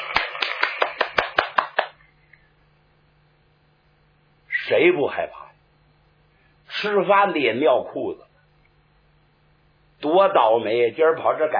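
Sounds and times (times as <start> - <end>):
crisp hand claps in a steady rhythm: 0.0 - 2.0
speech: 4.7 - 5.4, 6.8 - 8.3, 10.0 - 11.5.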